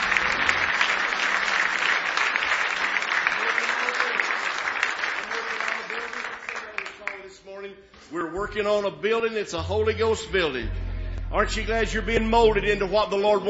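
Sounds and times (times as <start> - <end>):
audience hand clapping: 0.0 - 7.5
speech: 8.4 - 13.4.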